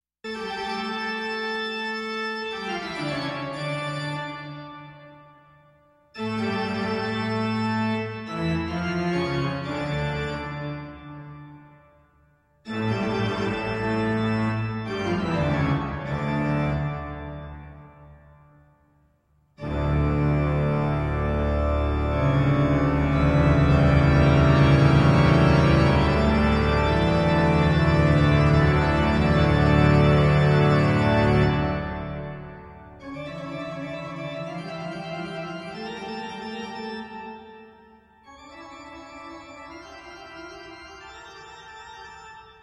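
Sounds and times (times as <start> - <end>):
organ piece: 0.3 - 12.0, 12.6 - 18.7, 19.6 - 42.6.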